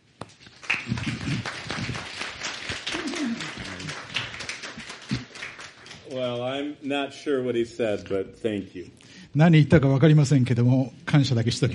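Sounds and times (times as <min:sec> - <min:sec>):
crowd clapping: 0:00.2 - 0:06.6
speech: 0:06.1 - 0:11.7.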